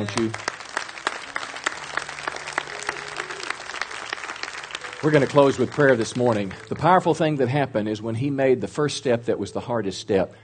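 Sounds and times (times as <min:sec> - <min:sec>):
speech: 0:00.0 - 0:00.5, 0:05.0 - 0:10.4
round of applause: 0:00.0 - 0:07.1.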